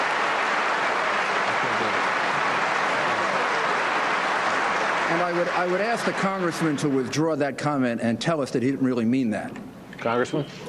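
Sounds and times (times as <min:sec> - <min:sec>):
audience applause in a played recording: 0:00.0 - 0:07.4
speech: 0:05.2 - 0:10.6.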